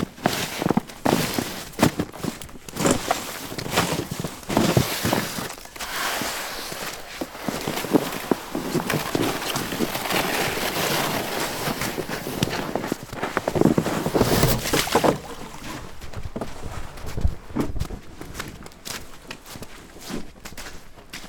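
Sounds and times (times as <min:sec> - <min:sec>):
snow shoveling: 0:00.1 - 0:15.8.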